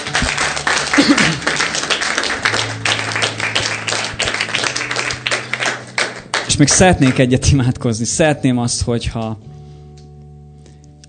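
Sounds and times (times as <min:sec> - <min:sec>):
audience applauding: 0:00.0 - 0:07.7
speech: 0:06.6 - 0:09.5.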